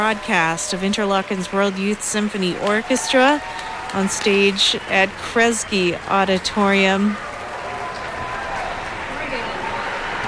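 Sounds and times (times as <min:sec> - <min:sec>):
speech: 0:00.0 - 0:07.3
concert audience applause: 0:00.0 - 0:10.2.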